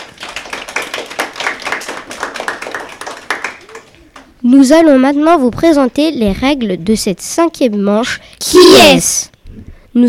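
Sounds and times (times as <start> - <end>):
audience applauding: 0.0 - 4.4
speech: 4.4 - 9.4.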